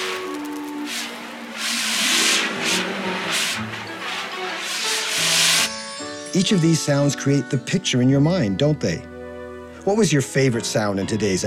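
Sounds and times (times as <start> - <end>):
fire extinguisher spraying: 0.0 - 5.9
speech: 6.3 - 9.2, 9.8 - 11.4.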